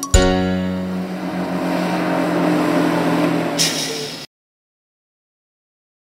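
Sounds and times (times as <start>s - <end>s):
bus: 0.2s - 4.3s.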